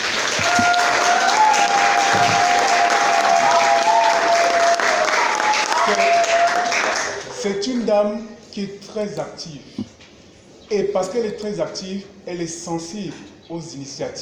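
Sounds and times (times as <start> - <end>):
audience applause: 0.0 - 7.4
speech: 7.4 - 9.9, 10.7 - 14.1.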